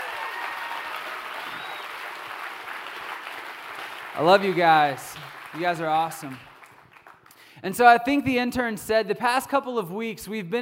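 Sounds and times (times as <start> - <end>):
whistles and cheers: 0.0 - 2.4
crowd applause: 0.0 - 7.4
speech: 4.2 - 6.5, 7.6 - 10.5.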